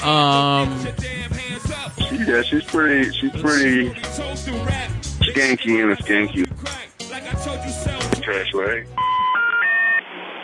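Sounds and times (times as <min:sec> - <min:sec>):
speech: 0:00.0 - 0:06.7, 0:07.8 - 0:09.0
telephone dialing tones for an international call: 0:09.0 - 0:10.0.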